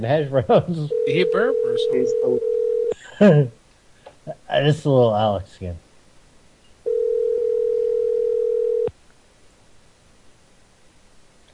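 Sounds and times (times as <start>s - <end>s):
speech: 0.0s - 3.6s, 4.2s - 5.8s
telephone dial tone after hang-up: 0.9s - 2.9s, 6.9s - 8.9s.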